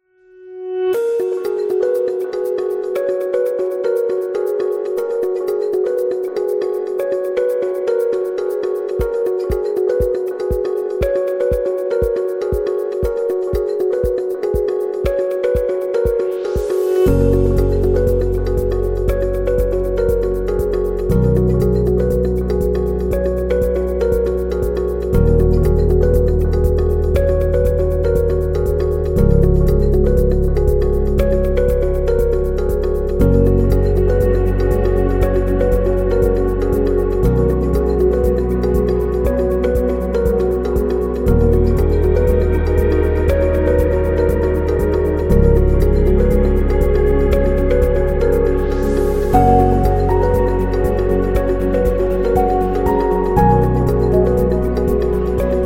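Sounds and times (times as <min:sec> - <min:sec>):
soft corporate music: 0:00.3 - 0:55.6.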